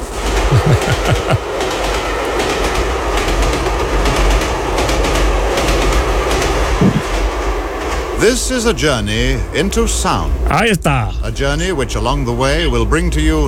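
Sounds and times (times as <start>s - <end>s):
laughter: 0.5s - 1.5s
train on rails: 1.4s - 10.5s
speech: 8.2s - 13.4s.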